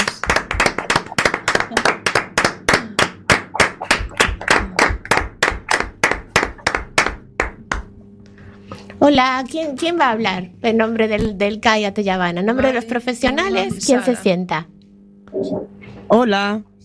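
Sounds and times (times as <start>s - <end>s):
audience applause: 0.0s - 7.6s
speech: 9.1s - 16.7s.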